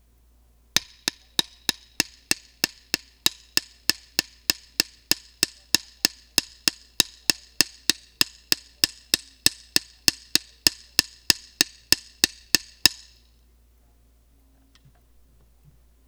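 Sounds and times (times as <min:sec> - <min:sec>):
sticks: 0:00.8 - 0:13.2.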